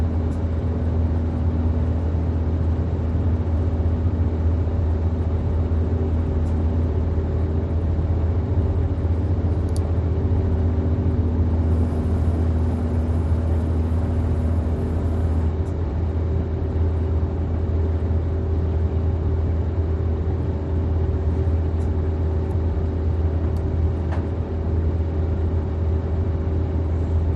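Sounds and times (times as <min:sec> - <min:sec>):
Renfe train air conditioning: 0:00.0 - 0:27.2
Renfe train idling in Spain: 0:11.5 - 0:15.6.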